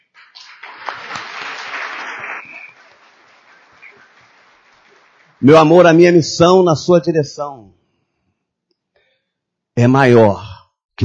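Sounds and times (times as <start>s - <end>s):
audience applause: 0.0s - 6.2s
speech: 5.4s - 7.8s, 9.8s - 11.0s.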